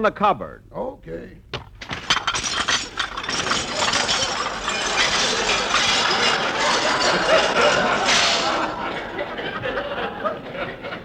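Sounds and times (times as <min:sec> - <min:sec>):
speech: 0:00.0 - 0:01.5
dishes crashing and shattering: 0:01.6 - 0:09.4
dishwashing machine rattling and clanking: 0:01.7 - 0:09.1
glass clinking: 0:01.8 - 0:09.2
laughter: 0:04.8 - 0:11.0.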